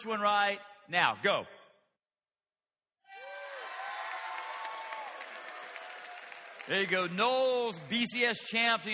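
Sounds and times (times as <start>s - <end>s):
speech: 0.0s - 1.6s, 6.7s - 8.9s
church audience cheering: 3.1s - 7.8s.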